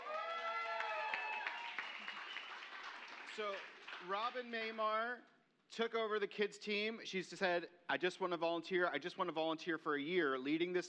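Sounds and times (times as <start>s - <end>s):
audience cheering: 0.0s - 4.2s
audience clapping: 0.0s - 4.8s
speech: 3.4s - 10.8s.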